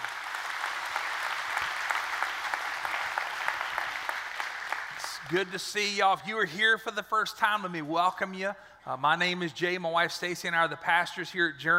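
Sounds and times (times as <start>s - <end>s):
crowd clapping: 0.0s - 5.7s
speech: 5.3s - 11.7s.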